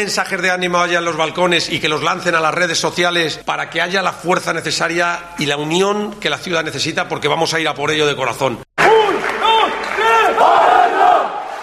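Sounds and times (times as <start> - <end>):
speech: 0.0 - 8.7
handball fans and rival players applauding and cheering: 8.8 - 11.6.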